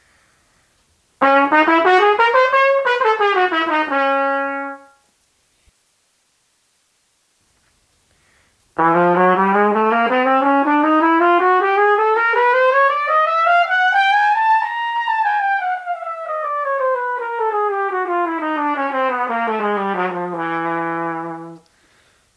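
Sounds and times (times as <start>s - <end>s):
trumpet playing audition scales: 1.2s - 5.1s, 8.8s - 21.7s.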